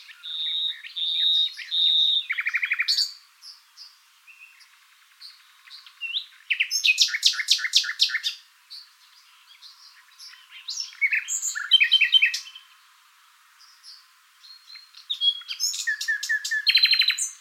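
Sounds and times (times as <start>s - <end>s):
common nightingale song: 0.0s - 17.3s.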